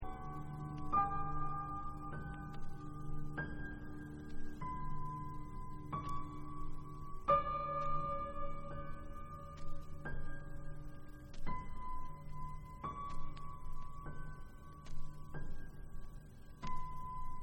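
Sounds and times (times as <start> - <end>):
piano: 0.0 - 17.4.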